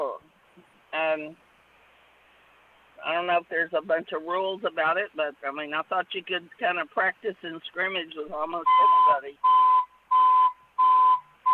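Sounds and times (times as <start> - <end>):
speech: 1.2 - 1.5, 3.0 - 9.6
truck reversing beeper: 8.6 - 11.5.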